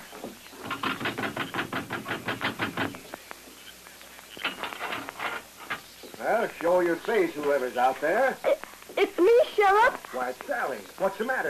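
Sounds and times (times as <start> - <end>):
knocking on a door: 0.2 - 3.0
speech: 6.2 - 8.6, 9.2 - 11.4.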